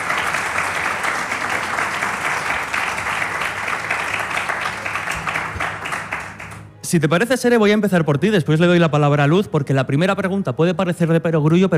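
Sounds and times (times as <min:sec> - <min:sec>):
audience applause: 0:00.0 - 0:06.7
speech: 0:06.9 - 0:11.7.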